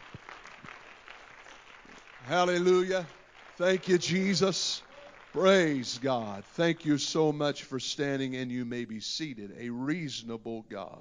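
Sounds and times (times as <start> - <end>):
audience clapping hands: 0.0 - 7.0
speech: 2.3 - 11.0.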